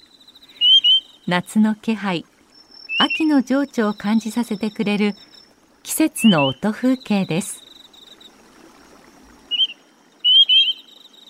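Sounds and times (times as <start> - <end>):
grey-tailed tattler whistled call: 0.6 - 1.2, 9.5 - 11.2
speech: 1.3 - 2.3, 3.0 - 7.6.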